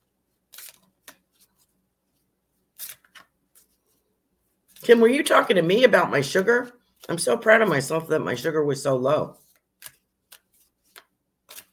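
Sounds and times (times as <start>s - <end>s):
playing card drawn from a deck: 0.5s - 1.2s, 2.8s - 3.7s, 9.5s - 11.7s
speech: 4.8s - 9.4s.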